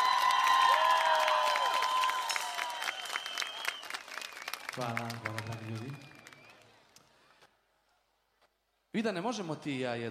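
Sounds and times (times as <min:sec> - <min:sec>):
audience applause after a live music performance: 0:00.0 - 0:06.8
speech: 0:04.8 - 0:06.2, 0:09.0 - 0:10.1.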